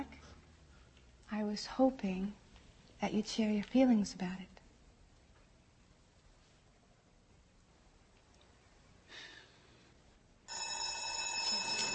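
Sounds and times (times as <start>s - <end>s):
speech: 1.4s - 2.4s, 3.0s - 4.5s
telephone bell ringing: 10.5s - 11.9s.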